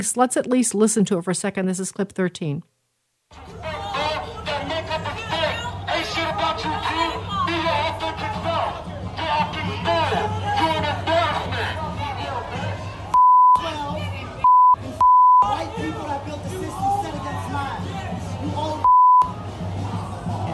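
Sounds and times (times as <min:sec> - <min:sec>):
speech: 0:00.0 - 0:02.8
crowd of protesters shouting in restaurant: 0:03.3 - 0:20.5
censor bleeps: 0:13.2 - 0:13.6, 0:14.4 - 0:15.5, 0:18.8 - 0:19.3.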